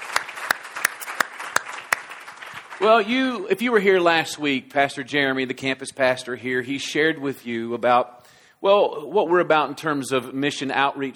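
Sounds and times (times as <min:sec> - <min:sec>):
sharp loud claps: 0:00.0 - 0:03.1
congregation at the Mount Perrin North Canton campus church applauding: 0:00.0 - 0:03.5
speech: 0:02.8 - 0:11.1.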